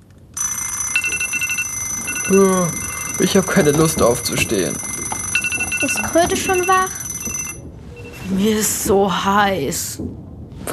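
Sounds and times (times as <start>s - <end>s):
alarm clocks ringing: 0.4s - 8.3s
speech: 2.3s - 4.9s, 5.8s - 7.0s, 8.3s - 10.7s.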